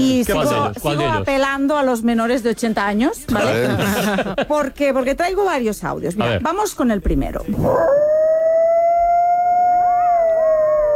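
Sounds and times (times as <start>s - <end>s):
speech: 0.0s - 8.3s
laughter: 3.3s - 4.8s
coyote howling: 7.6s - 10.9s.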